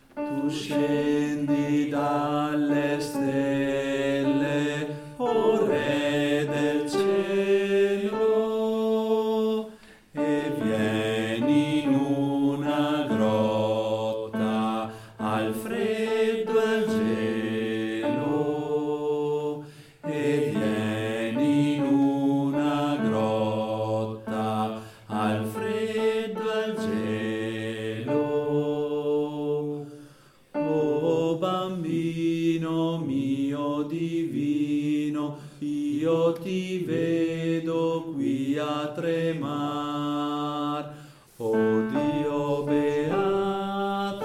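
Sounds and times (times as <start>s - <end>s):
bass voices singing a Christmas carol: 0.2s - 44.2s.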